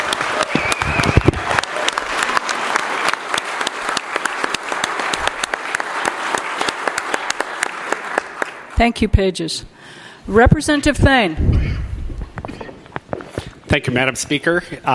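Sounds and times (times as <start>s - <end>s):
crowd applauding: 0.0s - 8.8s
speech: 8.8s - 11.6s, 13.7s - 14.9s.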